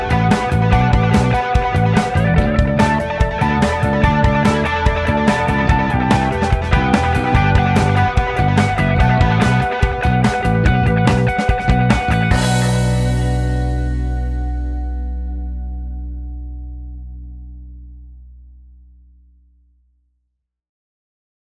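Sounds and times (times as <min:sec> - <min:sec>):
pop rock music: 0:00.0 - 0:17.0.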